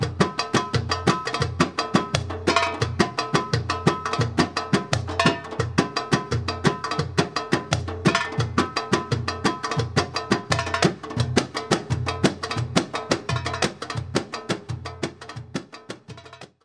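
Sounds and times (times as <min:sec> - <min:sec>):
oriental solo tabla playing: 0:00.0 - 0:16.6.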